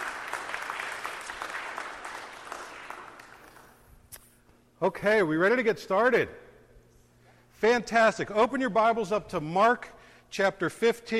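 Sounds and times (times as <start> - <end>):
audience applause: 0.0 - 3.8
speech: 4.8 - 6.4, 7.6 - 11.1.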